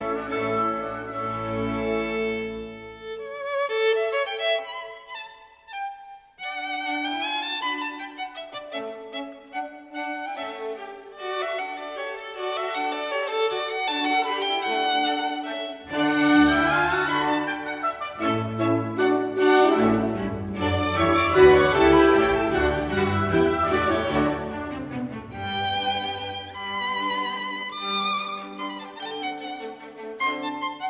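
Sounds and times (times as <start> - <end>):
violin concerto: 0.0 - 30.8.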